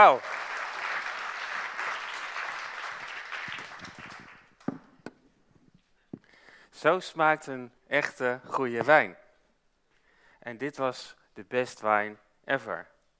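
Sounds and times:
speech: 0.0 - 0.4, 6.8 - 9.2, 10.4 - 12.9
audience applause: 0.0 - 4.6.

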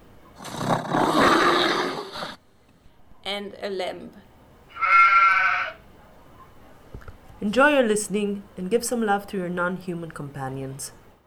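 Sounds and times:
bear roaring: 0.4 - 2.4, 4.7 - 5.8
speech: 3.4 - 4.3, 7.4 - 11.0.

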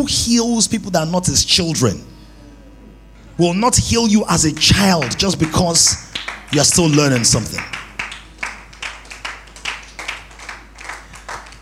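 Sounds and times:
speech: 0.0 - 2.2, 3.4 - 7.8
audience clapping in a steady rhythm: 4.4 - 11.6.

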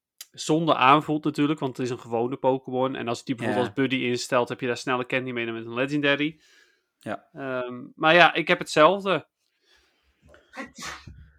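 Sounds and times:
speech: 0.4 - 9.3, 10.6 - 11.2
person sneezing: 10.4 - 11.3.

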